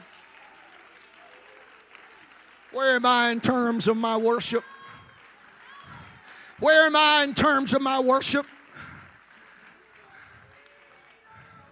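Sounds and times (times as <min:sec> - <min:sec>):
audience clapping in worship: 0:00.0 - 0:11.7
speech: 0:02.7 - 0:04.7, 0:06.6 - 0:08.6.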